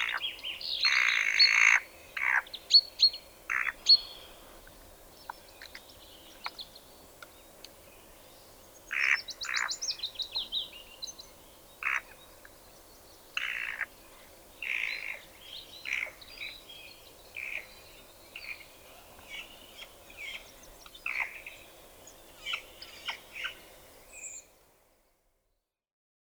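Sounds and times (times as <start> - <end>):
spotted nutcracker singing: 0.0 - 4.5, 5.1 - 24.5.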